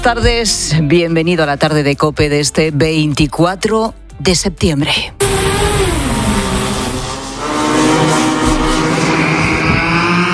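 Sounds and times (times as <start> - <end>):
speech: 0.0 - 5.3
Gerbera drone flying with buzzing engine whine: 5.2 - 10.3.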